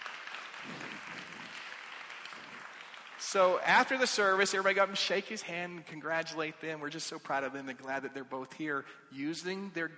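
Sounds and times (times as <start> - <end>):
congregation applauding a newly married couple at a church service: 0.0 - 5.3
speech: 3.3 - 9.9.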